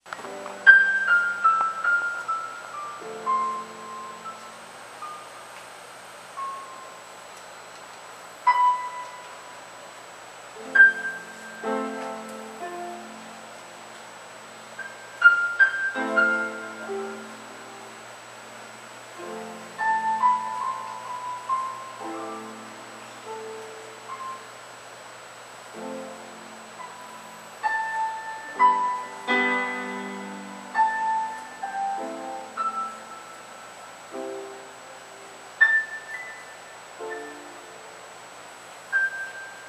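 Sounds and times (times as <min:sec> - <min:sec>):
soft piano: 0:00.0 - 0:39.6.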